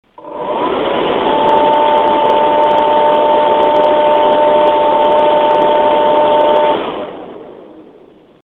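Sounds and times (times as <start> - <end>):
Cooler Master Aero computer fan running on high: 0.0 - 8.4.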